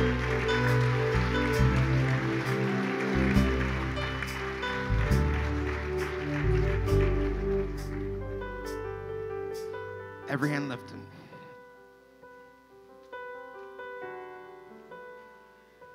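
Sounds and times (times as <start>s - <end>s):
audience clapping: 0.0s - 8.8s
speech: 10.4s - 10.9s.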